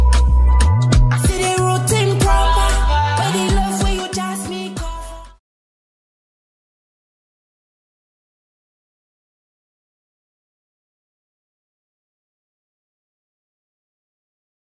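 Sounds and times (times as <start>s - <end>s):
instrumental beat: 0.0s - 5.4s.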